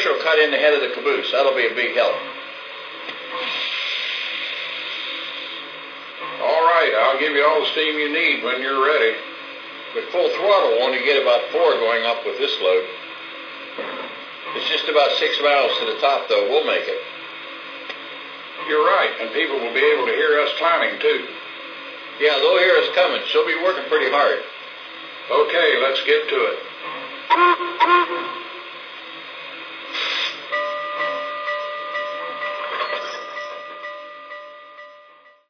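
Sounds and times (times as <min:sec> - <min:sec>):
trains: 0:00.0 - 0:35.4.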